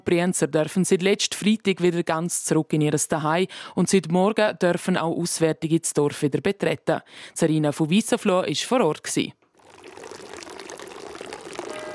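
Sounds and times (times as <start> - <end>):
speech: 0.1 - 10.2
village fountain water splashing and pouring: 9.6 - 11.9.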